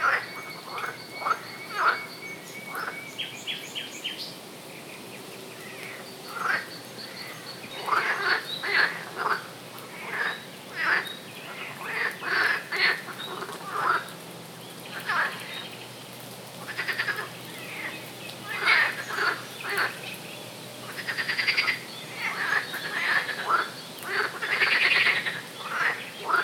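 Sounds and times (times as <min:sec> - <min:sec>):
frog chorus croaking: 0:00.0 - 0:03.0, 0:05.8 - 0:14.1, 0:14.9 - 0:15.6, 0:16.6 - 0:20.0, 0:20.8 - 0:26.4.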